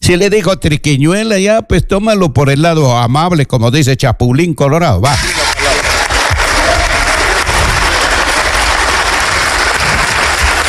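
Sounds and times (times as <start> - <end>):
speech: 0.1 - 5.4
applause: 5.1 - 10.6.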